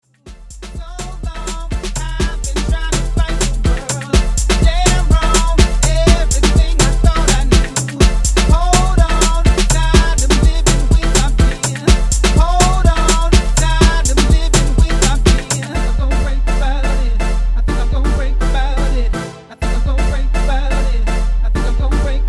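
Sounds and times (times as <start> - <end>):
UK funky music: 0.1 - 22.2.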